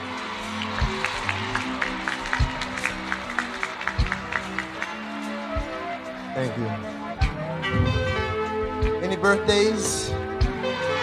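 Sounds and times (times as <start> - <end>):
audience applause for a band's musical director at a live show: 0.0 - 6.2
speech: 6.4 - 7.0, 9.1 - 10.2
low thumps: 7.6 - 9.0.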